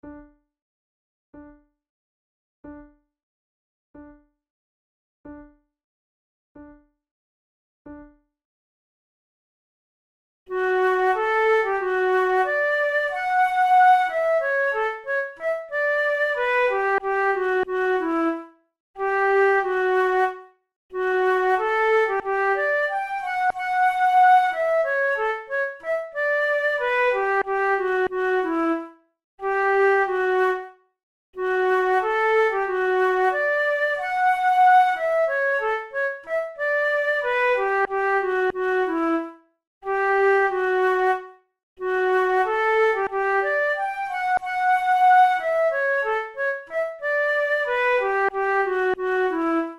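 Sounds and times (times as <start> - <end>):
flute duet: 10.5 - 30.8, 31.4 - 49.7.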